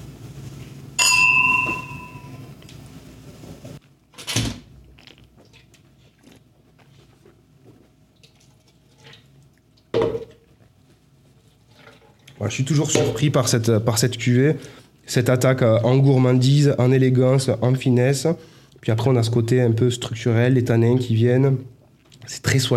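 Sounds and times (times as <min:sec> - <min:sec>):
wine glasses clinking in a toast: 0:01.0 - 0:02.5
speech: 0:12.4 - 0:22.7.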